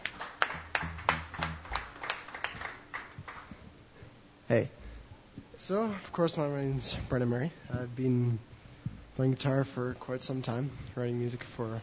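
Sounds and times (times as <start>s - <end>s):
audience applauding a performer at a songwriters' stage: 0.0s - 3.5s
speech: 4.5s - 4.8s, 5.6s - 8.5s, 9.2s - 11.8s.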